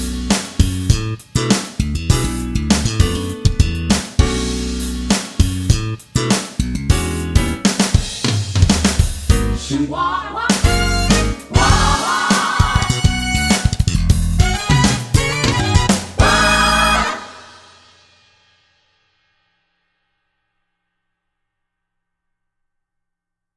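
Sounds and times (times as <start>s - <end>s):
short funk music: 0.0s - 17.8s.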